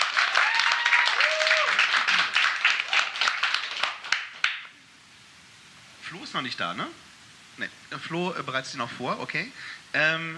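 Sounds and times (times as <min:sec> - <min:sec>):
audience applause: 0:00.0 - 0:04.7
speech: 0:06.3 - 0:10.3.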